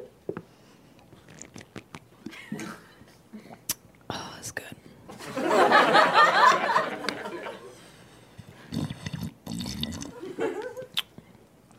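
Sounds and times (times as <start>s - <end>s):
person drinking water: 0.3s - 4.1s, 8.3s - 11.2s
laughter: 5.1s - 7.8s, 10.1s - 10.9s.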